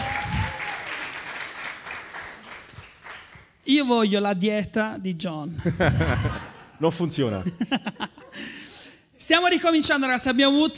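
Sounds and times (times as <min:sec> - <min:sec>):
audience applauding: 0:00.0 - 0:03.6
speech: 0:03.7 - 0:08.5, 0:09.3 - 0:10.7
laughter: 0:05.5 - 0:08.8.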